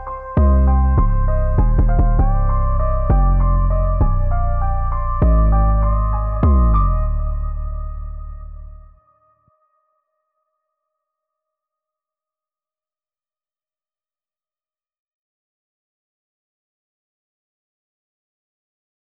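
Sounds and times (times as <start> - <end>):
instrumental music: 0.0 - 9.1.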